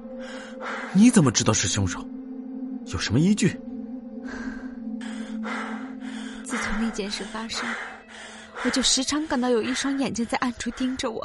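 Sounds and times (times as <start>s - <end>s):
speech: 0.2s - 2.2s, 2.9s - 4.5s, 6.8s - 11.2s
man panting heavily: 5.0s - 9.8s.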